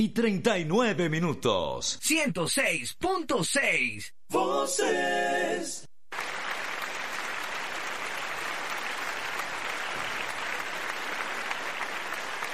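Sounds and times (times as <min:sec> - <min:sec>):
speech: 0:00.0 - 0:05.9
audience applause: 0:06.1 - 0:12.5.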